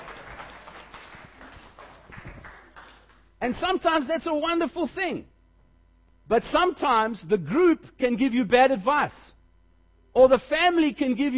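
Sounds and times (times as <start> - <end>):
crowd applauding: 0.0 - 3.3
speech: 3.4 - 5.3, 6.3 - 9.4, 10.2 - 11.3.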